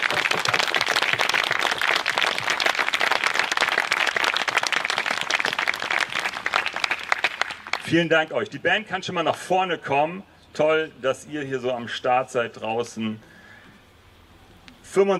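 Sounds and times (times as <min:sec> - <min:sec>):
crowd applauding: 0:00.0 - 0:07.9
speech: 0:07.9 - 0:13.3, 0:14.9 - 0:15.1.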